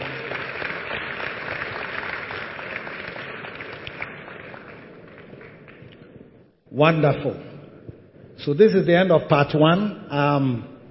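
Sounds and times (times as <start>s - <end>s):
church audience applause: 0.0s - 6.0s
speech: 6.8s - 7.5s, 8.4s - 10.7s.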